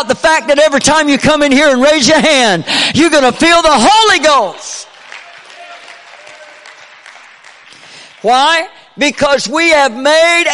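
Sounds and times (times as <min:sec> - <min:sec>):
speech: 0:00.0 - 0:04.9, 0:08.2 - 0:10.5
audience clapping hands: 0:04.7 - 0:08.8.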